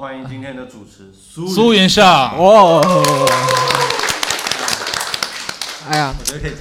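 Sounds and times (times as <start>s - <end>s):
speech: 0.0s - 3.9s, 5.8s - 6.5s
audience applause: 2.7s - 6.5s.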